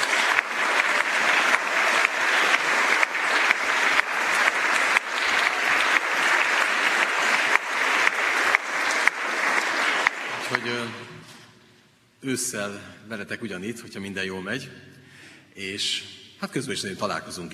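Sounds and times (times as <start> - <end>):
audience applause: 0.0 - 11.1
speech: 12.2 - 14.9, 15.6 - 17.5.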